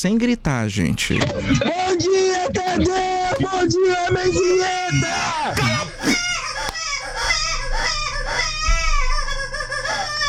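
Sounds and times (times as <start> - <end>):
speech: 0.0 - 6.2
low steady hum: 0.0 - 10.2
baby crying: 2.7 - 10.2.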